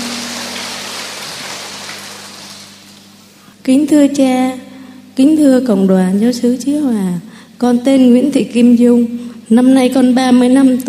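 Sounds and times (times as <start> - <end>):
crowd clapping: 0.0 - 2.9
speech: 3.6 - 4.6, 5.2 - 10.8.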